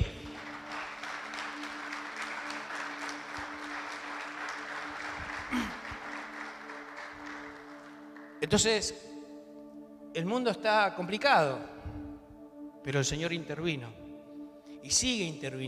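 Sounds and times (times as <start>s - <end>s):
crowd applauding: 0.0s - 8.7s
speech: 8.5s - 9.1s, 10.1s - 11.8s, 12.8s - 14.0s, 14.8s - 15.6s.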